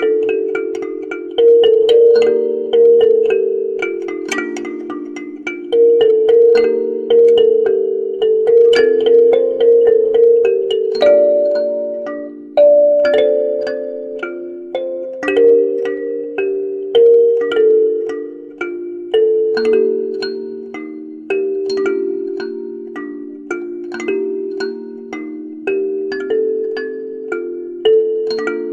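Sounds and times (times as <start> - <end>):
kalimba canon: 0.0 - 28.7.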